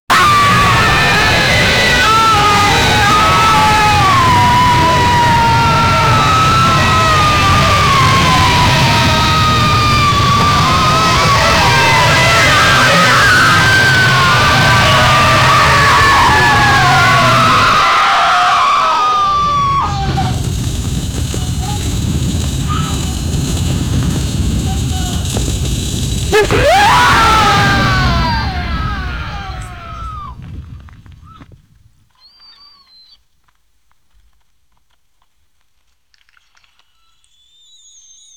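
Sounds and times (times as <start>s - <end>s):
man screaming: 0.1s - 30.2s
man falling: 0.4s - 30.0s.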